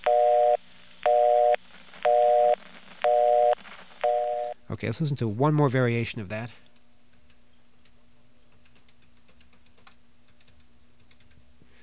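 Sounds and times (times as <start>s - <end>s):
mechanical telephone busy signal: 0.0s - 4.6s
speech: 4.8s - 6.7s.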